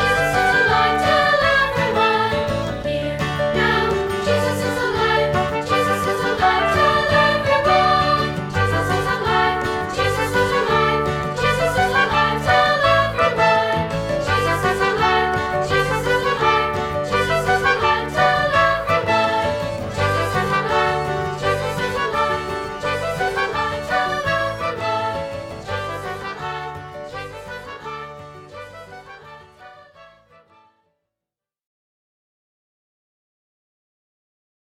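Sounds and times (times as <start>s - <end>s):
voices: 0.0s - 25.1s.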